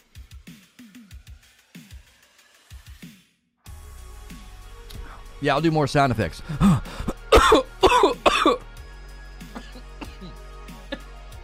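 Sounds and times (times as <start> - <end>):
speech: 5.4 - 6.8
throat-clearing hacks: 6.4 - 8.6, 9.5 - 11.2
person coughing after choking on food: 6.5 - 8.6, 9.6 - 11.0.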